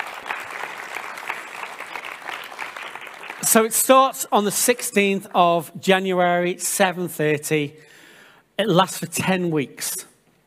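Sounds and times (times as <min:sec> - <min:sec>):
audience round of applause: 0:00.0 - 0:03.7
speech: 0:03.4 - 0:08.0, 0:08.6 - 0:10.1.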